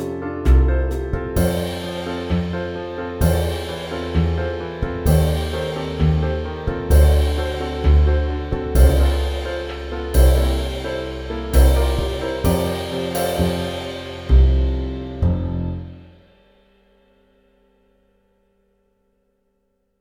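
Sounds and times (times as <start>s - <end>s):
backing music: 0.5s - 16.2s.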